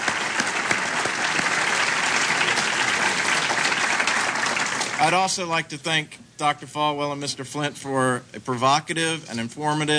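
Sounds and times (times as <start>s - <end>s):
audience applause: 0.0s - 5.3s
speech: 5.0s - 9.9s.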